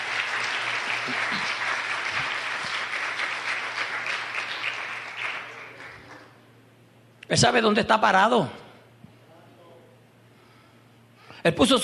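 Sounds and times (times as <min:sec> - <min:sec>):
applause: 0:00.0 - 0:06.4
speech: 0:01.1 - 0:01.6, 0:07.3 - 0:08.6, 0:11.4 - 0:11.8.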